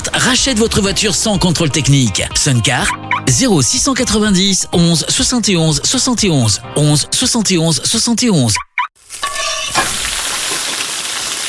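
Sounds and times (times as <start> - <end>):
speech: 0.2 - 8.7
duck sizzling in a hot pan: 9.0 - 11.4.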